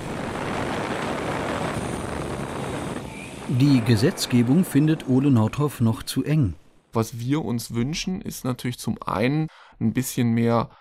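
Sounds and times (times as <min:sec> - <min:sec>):
delivery drone flying in a dedicated air corridor: 0:00.0 - 0:03.5
speech: 0:03.5 - 0:10.7.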